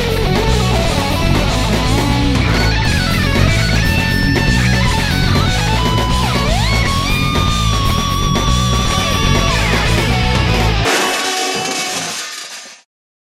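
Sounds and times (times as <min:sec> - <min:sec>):
cowbell rock music: 0:00.0 - 0:12.0.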